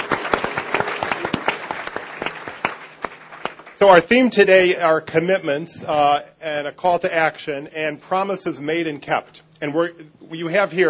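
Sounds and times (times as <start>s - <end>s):
crowd applause: 0.0s - 4.0s
speech: 3.8s - 10.8s.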